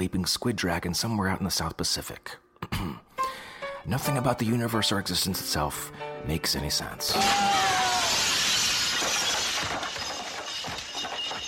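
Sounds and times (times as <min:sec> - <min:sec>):
speech: 0:00.0 - 0:03.0, 0:03.8 - 0:07.8
window glass shattering: 0:07.1 - 0:11.4
glass shards tinkling: 0:07.7 - 0:11.4.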